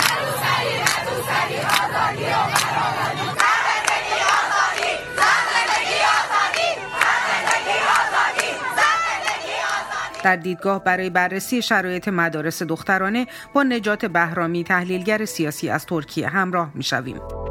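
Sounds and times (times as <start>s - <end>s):
crowd of young schoolgirls chanting slogans in the street: 0.0s - 10.2s
speech: 10.2s - 17.4s.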